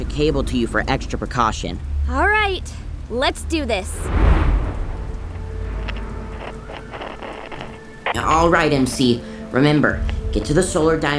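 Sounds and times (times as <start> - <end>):
speech: 0.1 - 4.4, 8.2 - 11.1
rain-like hiss: 2.8 - 10.3
storm thunder sound effect: 3.7 - 8.6
brief crackling flare: 4.1 - 10.4.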